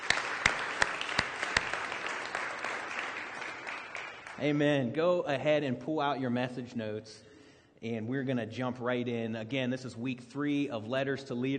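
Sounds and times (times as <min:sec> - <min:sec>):
jail campus church congregation applauding: 0:00.0 - 0:04.8
speech: 0:04.4 - 0:11.5.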